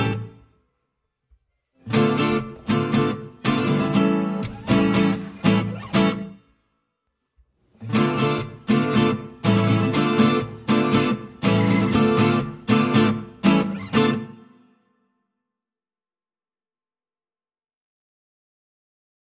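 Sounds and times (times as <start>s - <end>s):
guitars playing: 0.0s - 0.4s, 1.8s - 6.4s, 7.8s - 14.5s.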